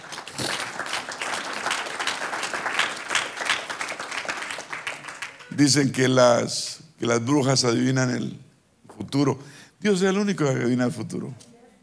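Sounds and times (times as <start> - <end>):
audience applause: 0.0 - 5.8
speech: 5.6 - 8.4, 9.1 - 11.5.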